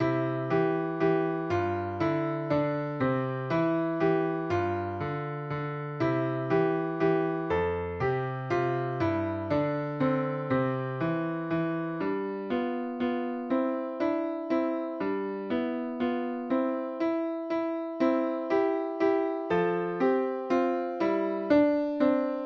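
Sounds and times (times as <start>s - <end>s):
German dance piano piece: 0.0s - 22.4s.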